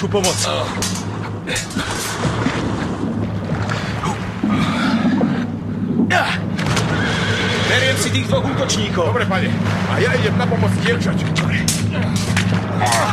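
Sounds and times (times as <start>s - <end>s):
speech: 0.0s - 2.8s, 6.1s - 6.4s, 7.7s - 13.1s
oars splashing while rowing a boat toward the Brittany coast: 0.0s - 13.1s
water sloshing: 0.0s - 13.1s
wind rushing: 1.4s - 8.0s.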